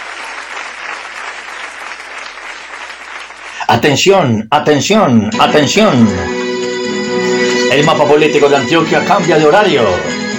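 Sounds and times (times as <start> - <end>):
audience applause: 0.0 - 3.8
speech: 3.7 - 6.4, 7.7 - 10.2.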